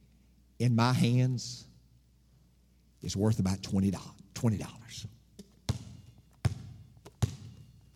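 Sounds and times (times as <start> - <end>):
speech: 0.6 - 1.7, 3.0 - 5.2
basketball bouncing on a hard floor: 5.4 - 7.9.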